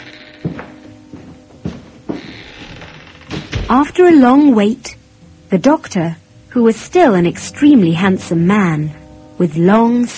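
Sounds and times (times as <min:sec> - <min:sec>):
door being opened: 0:00.0 - 0:04.3
speech: 0:03.7 - 0:04.9, 0:05.5 - 0:10.1.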